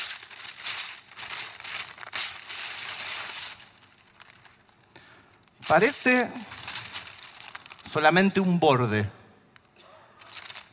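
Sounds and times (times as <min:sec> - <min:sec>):
paper wrapping being torn and crumpled: 0:00.0 - 0:04.7, 0:05.6 - 0:08.2, 0:10.2 - 0:10.7
speech: 0:05.7 - 0:06.5, 0:07.9 - 0:09.2.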